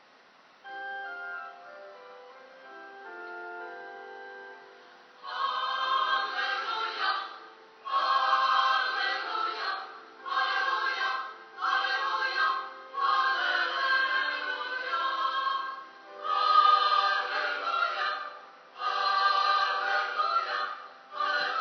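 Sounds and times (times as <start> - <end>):
song: 0.6 - 21.5.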